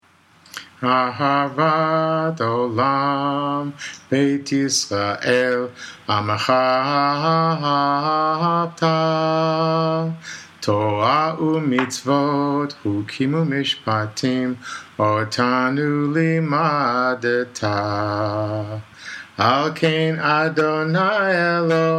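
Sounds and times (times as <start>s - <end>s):
a cappella singing: 0.5s - 21.9s.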